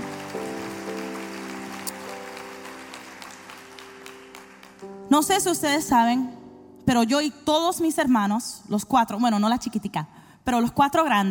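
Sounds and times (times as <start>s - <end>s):
audience applause: 0.0s - 5.0s
sustained keyboard chords: 0.0s - 6.9s
speech: 5.1s - 11.2s.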